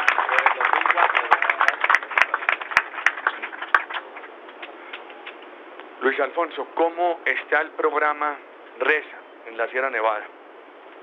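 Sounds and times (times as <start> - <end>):
audience applause: 0.0 - 5.4
speech: 6.0 - 10.4.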